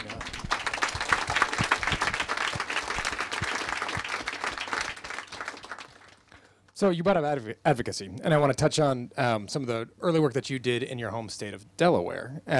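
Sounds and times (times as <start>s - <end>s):
crowd clapping: 0.0s - 6.5s
speech: 6.8s - 12.5s.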